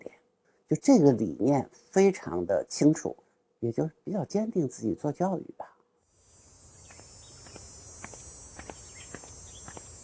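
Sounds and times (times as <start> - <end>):
speech: 0.7 - 5.7
cicadas chirping in summer: 6.1 - 10.0.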